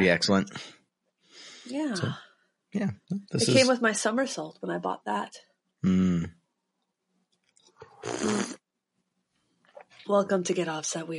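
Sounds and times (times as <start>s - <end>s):
speech: 0.0s - 0.8s, 1.7s - 6.4s, 8.0s - 8.6s, 10.1s - 11.1s
person slurping coffee: 7.8s - 8.6s.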